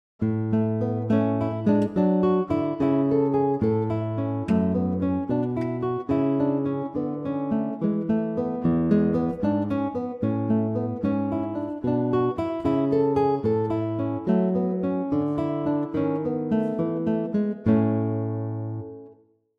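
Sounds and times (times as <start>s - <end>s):
guitar: 0.2s - 19.2s.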